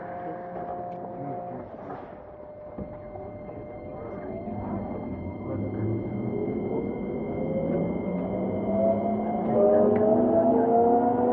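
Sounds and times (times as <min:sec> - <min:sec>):
faint high steady tone: 0:00.0 - 0:10.7
Keikyu 2100 series train motor whine pulling away: 0:00.0 - 0:11.3
low rumble: 0:02.4 - 0:11.3.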